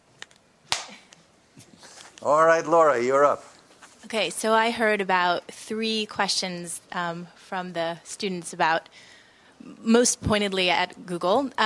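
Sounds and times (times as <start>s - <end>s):
single hand clap: 0.7s - 1.1s
speech: 2.2s - 3.5s, 4.1s - 11.6s.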